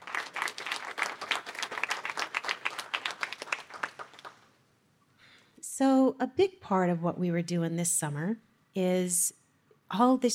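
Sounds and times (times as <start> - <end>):
crowd applauding: 0.0 - 4.5
speech: 5.8 - 10.3.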